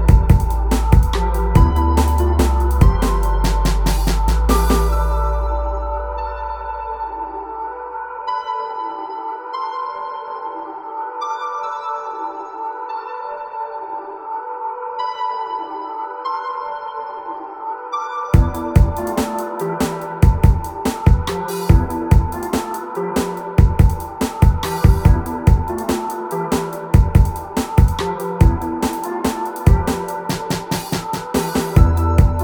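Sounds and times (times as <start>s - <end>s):
drums: 0.0s - 5.4s, 18.4s - 32.4s
ambience: 0.0s - 9.8s, 18.4s - 32.4s.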